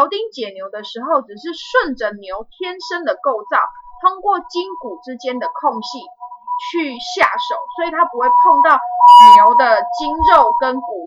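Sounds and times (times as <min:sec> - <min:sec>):
speech: 0:00.0 - 0:11.0
ambulance siren passing outside: 0:02.8 - 0:11.0.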